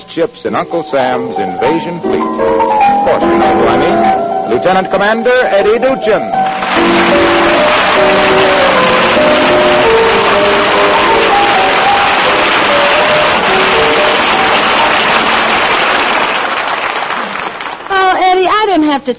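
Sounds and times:
speech: 0.2 - 7.4, 18.9 - 19.1
large audience applauding: 6.4 - 18.2.

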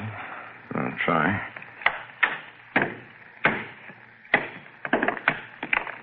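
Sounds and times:
speech: 0.8 - 1.6
hammer striking and breaking a stone: 1.8 - 5.8.

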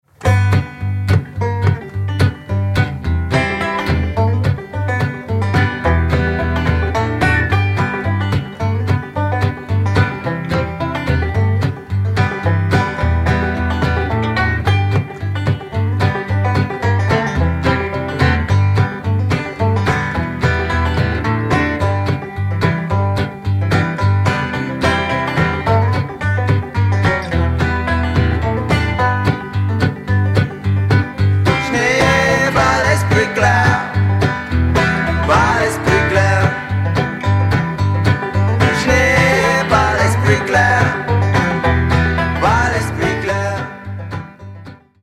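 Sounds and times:
Appalachian folk song: 0.0 - 45.0.

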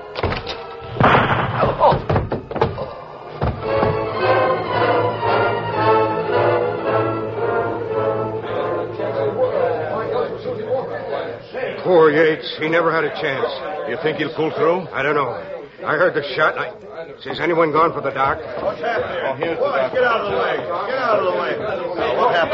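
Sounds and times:
murmur of voices: 0.0 - 22.5
door being worked open: 0.1 - 4.2
speech: 12.1 - 22.5.

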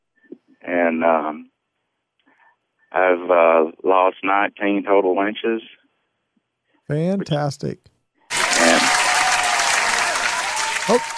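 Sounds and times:
speech: 0.8 - 1.5, 2.9 - 5.8, 6.9 - 7.9, 10.9 - 11.1
studio audience cheering voices: 8.3 - 11.1
studio audience clapping on a TV talk show: 8.3 - 11.1.

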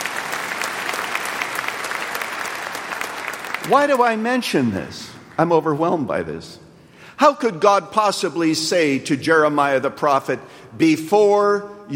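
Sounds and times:
crowd applauding: 0.0 - 4.6
speech: 3.7 - 6.6, 7.2 - 11.9.

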